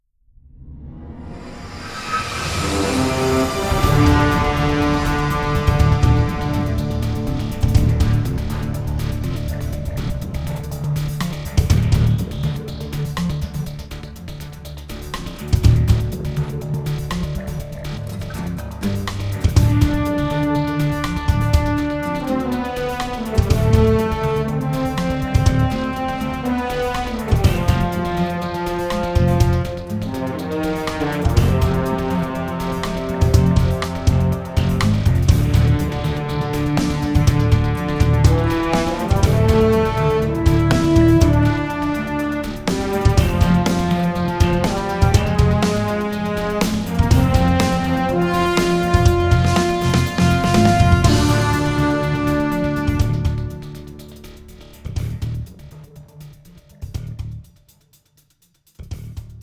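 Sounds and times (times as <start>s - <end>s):
low tension inspirational music without guitars: 0.3s - 57.5s.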